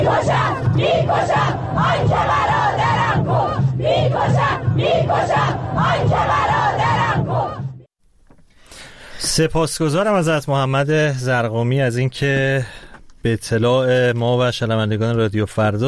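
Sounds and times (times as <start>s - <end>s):
funeral crowd chanting protest slogans: 0.0s - 7.9s
speech: 9.4s - 15.8s.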